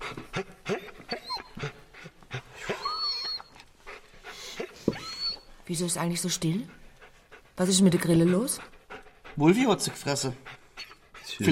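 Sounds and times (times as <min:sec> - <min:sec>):
dog panting: 0:00.0 - 0:11.5
dog whimpering and whining: 0:00.3 - 0:03.7, 0:04.6 - 0:05.6, 0:10.8 - 0:11.5
speech: 0:05.7 - 0:06.8, 0:07.6 - 0:08.7, 0:09.4 - 0:10.5.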